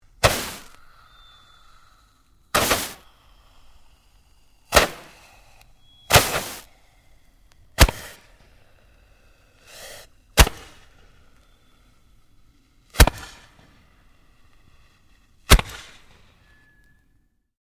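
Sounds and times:
domestic multiple 8 shot fireworks launcher firing: 0.1s - 16.9s.

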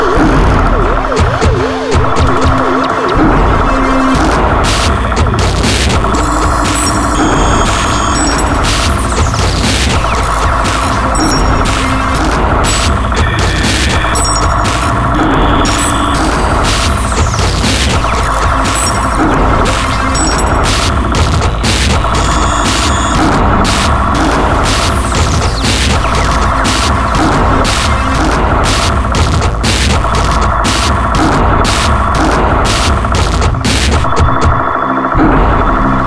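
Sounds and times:
synth sweeper lead: 0.0s - 29.0s
distorted synth drum loop: 0.0s - 36.0s.

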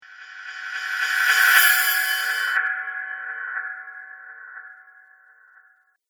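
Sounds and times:
reverse cymbal whoosh: 0.0s - 5.0s.

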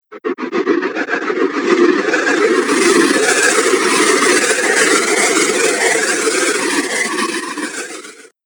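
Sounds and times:
air whoosh: 0.2s - 7.2s.

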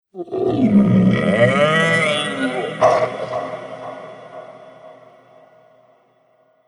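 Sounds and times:
shape-shifting monster crying in pain: 0.2s - 4.4s.

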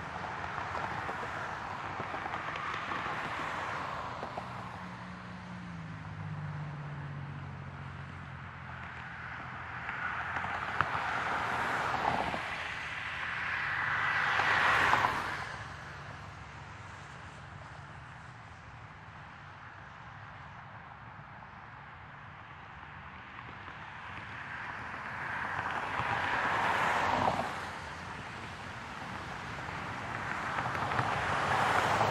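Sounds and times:
close traffic and car: 0.0s - 32.0s.

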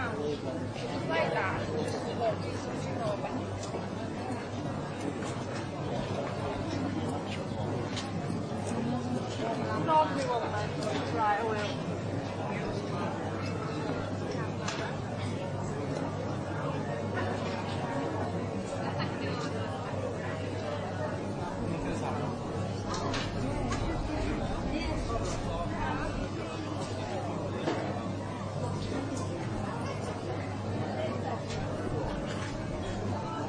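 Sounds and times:
people talking on a pedestrian street: 0.0s - 33.4s
people walking on a pedestrian street: 22.4s - 27.2s.

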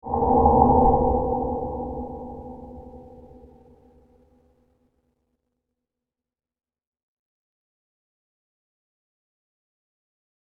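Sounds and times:
subtle atmospheric space reverb: 0.0s - 4.2s.

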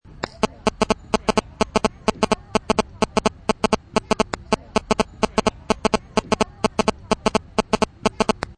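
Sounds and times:
electrical static noise: 0.2s - 8.5s.

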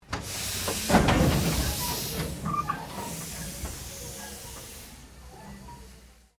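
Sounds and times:
steam train lurching: 0.0s - 6.3s.

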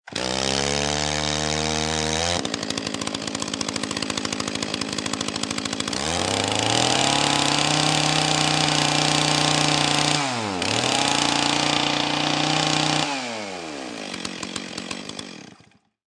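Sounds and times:
chainsaw starting, running, revving and turning off: 0.0s - 16.0s.

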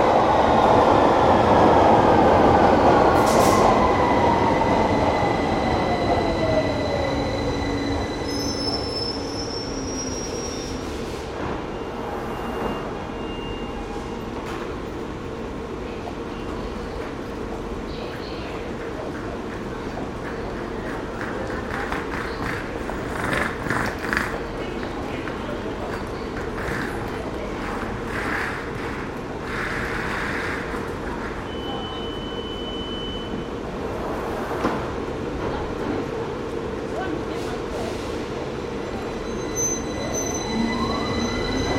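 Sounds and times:
ambience of a London Underground tube station: 0.0s - 41.7s.

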